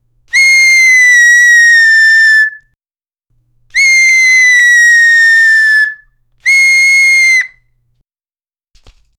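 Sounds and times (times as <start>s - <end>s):
quick half-second whistle blasts: 0.3s - 2.6s, 3.8s - 7.6s.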